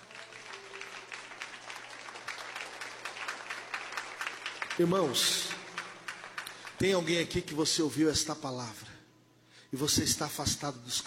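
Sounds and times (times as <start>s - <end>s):
audience applauding: 0.0s - 7.4s
speech: 4.8s - 5.5s, 6.8s - 9.0s, 9.7s - 11.0s.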